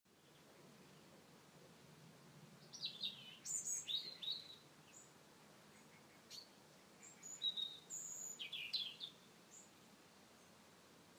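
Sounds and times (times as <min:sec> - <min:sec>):
bird calling with high thin chirps: 0:02.6 - 0:05.1, 0:05.7 - 0:09.7.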